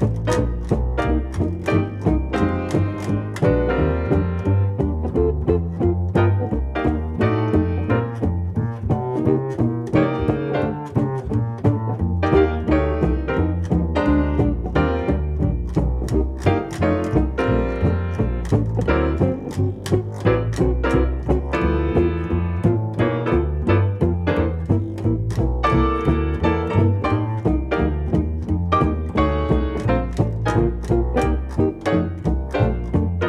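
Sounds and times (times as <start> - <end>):
instrumental music: 0.0 - 33.2.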